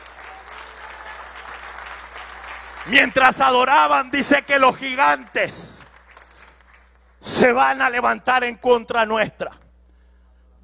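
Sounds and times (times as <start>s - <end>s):
congregation applause during a Spanish-language church worship service: 0.0s - 8.0s
speech: 2.8s - 5.8s, 7.3s - 9.6s.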